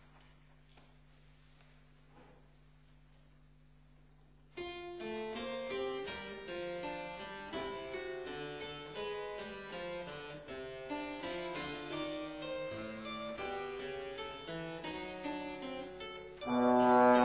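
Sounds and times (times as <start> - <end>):
music: 4.6 - 17.2.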